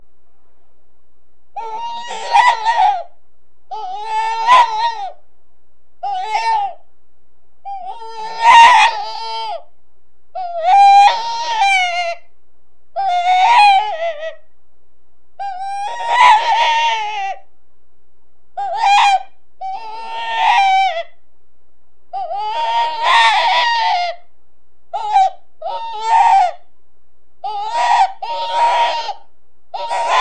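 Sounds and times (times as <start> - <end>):
rabbit distress cries: 1.6 - 3.1, 3.7 - 5.2, 6.0 - 6.8, 7.6 - 9.7, 10.4 - 12.3, 13.0 - 14.4, 15.4 - 17.5, 18.6 - 21.2, 22.1 - 24.3, 24.9 - 26.7, 27.4 - 30.1.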